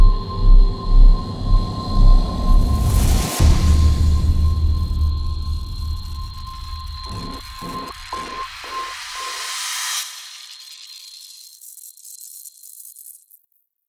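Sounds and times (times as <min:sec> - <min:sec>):
suspense music cue: 0:00.0 - 0:08.5.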